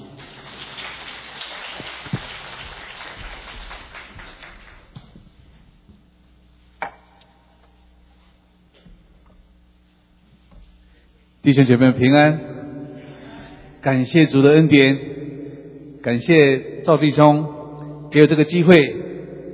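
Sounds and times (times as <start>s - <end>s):
audience applause: 0.0s - 5.2s
speech: 11.4s - 12.5s, 13.8s - 15.2s, 16.0s - 19.0s.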